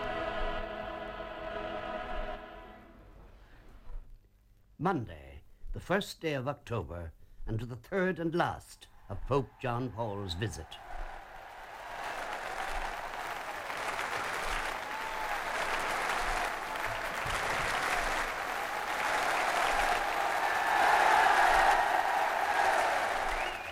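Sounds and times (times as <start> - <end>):
crowd roaring and applauding in welcome: 0.0 - 2.8, 9.2 - 23.6
speech: 4.8 - 10.9.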